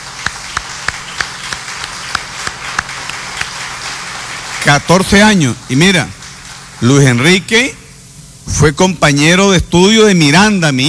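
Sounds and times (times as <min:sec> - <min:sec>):
applause: 0:00.0 - 0:07.5
speech: 0:04.6 - 0:06.2, 0:06.8 - 0:07.8, 0:08.5 - 0:10.8.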